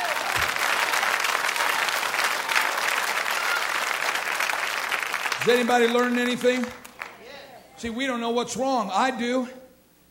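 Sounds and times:
audience clapping hands: 0.0 - 7.3
speech: 5.4 - 6.8, 7.8 - 9.6.

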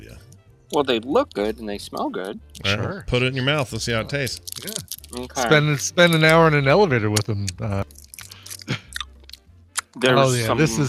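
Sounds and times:
speech: 0.1 - 8.0, 10.0 - 10.8
person chewing food: 4.2 - 5.4, 7.2 - 10.0.

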